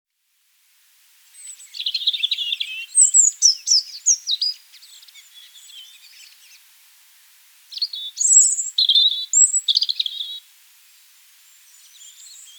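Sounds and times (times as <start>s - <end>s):
European robin singing: 1.4s - 6.6s, 7.7s - 10.4s, 11.7s - 12.5s.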